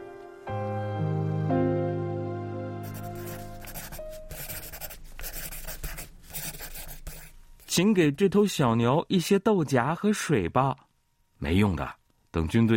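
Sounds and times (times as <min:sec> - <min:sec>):
sustained musical notes: 0:00.0 - 0:04.4
pencil writing on paper: 0:02.8 - 0:07.7
speech: 0:07.8 - 0:12.7.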